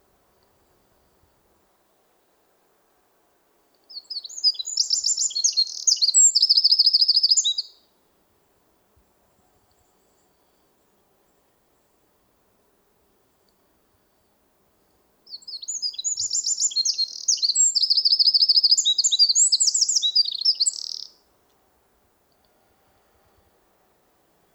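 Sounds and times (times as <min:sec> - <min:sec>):
Eurasian wren singing: 0:03.9 - 0:07.7, 0:15.3 - 0:21.2.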